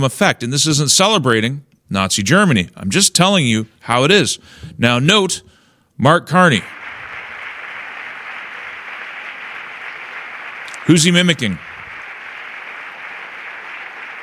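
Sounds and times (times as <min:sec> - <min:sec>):
speech: 0:00.0 - 0:06.8, 0:10.9 - 0:11.7
thunderous applause: 0:06.6 - 0:14.2.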